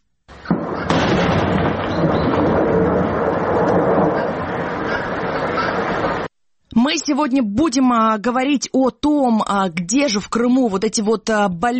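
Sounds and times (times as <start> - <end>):
quarry blast explosion: 0.5 - 6.3
speech: 6.8 - 11.7.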